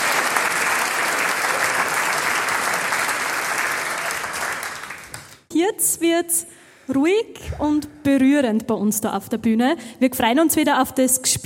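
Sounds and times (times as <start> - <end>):
audience applause: 0.0 - 5.4
speech: 5.6 - 11.4.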